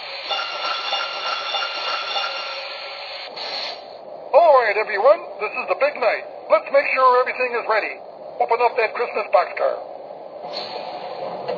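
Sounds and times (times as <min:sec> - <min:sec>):
bell ringing: 0:00.3 - 0:02.6
speech: 0:04.6 - 0:11.5.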